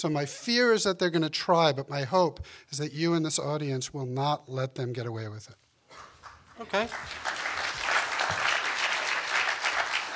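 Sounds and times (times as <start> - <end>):
speech: 0.0 - 7.5
audience applause at a talk about how non-profits survive: 6.0 - 10.1.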